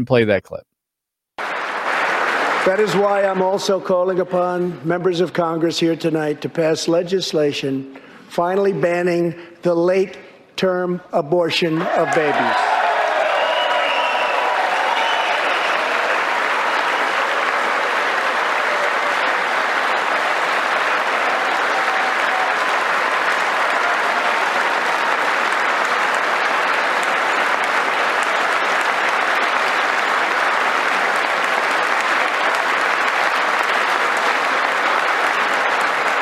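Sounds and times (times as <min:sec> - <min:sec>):
speech: 0:00.0 - 0:00.7, 0:02.6 - 0:12.7
audience applause: 0:01.4 - 0:04.2, 0:11.8 - 0:36.2.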